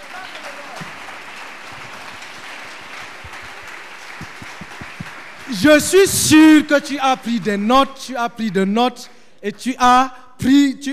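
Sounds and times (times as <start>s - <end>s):
congregation applauding loudly at a church gathering: 0.0s - 7.6s
speech: 5.5s - 10.9s.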